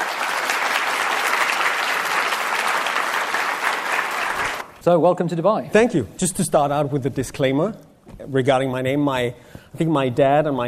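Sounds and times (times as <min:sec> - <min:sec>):
audience applause: 0:00.0 - 0:04.7
speech: 0:04.8 - 0:10.6.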